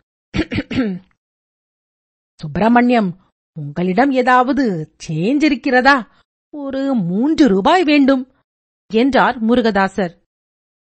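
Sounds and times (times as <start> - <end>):
man imitating throat clearing: 0.4 - 1.1
speech: 0.4 - 1.1, 2.4 - 8.3, 8.9 - 10.2.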